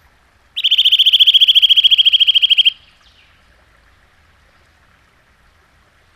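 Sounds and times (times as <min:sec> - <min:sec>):
Eurasian nuthatch trill of piping notes: 0:00.6 - 0:02.9.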